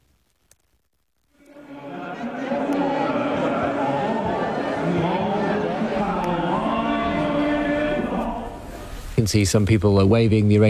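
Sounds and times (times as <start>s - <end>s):
laughter: 1.4s - 9.4s
crowd at funeral procession: 1.4s - 10.6s
speech: 9.2s - 10.6s.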